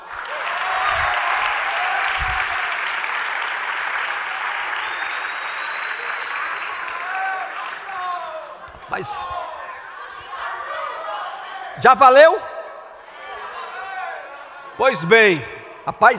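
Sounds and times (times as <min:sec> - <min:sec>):
audience applause: 0:00.0 - 0:08.5
speech: 0:09.0 - 0:09.4, 0:11.8 - 0:12.5, 0:14.8 - 0:16.1.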